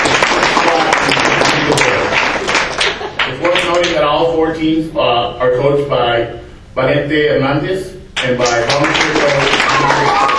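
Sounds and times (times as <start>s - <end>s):
loud audience clapping honoring champion teams: 0.0s - 4.0s, 8.2s - 10.3s
speech: 4.2s - 10.3s.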